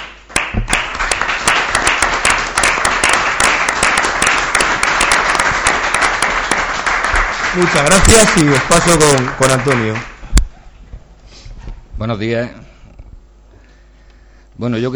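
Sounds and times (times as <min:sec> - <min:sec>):
crowd applause: 0:00.0 - 0:10.2
speech: 0:07.6 - 0:10.1, 0:12.0 - 0:12.7, 0:14.6 - 0:14.9.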